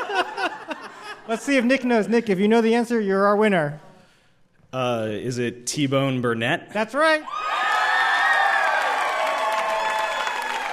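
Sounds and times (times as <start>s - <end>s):
laughter: 0.0s - 2.0s
speech: 1.3s - 3.9s, 4.7s - 7.5s
crowd cheering and applauding: 7.4s - 10.7s.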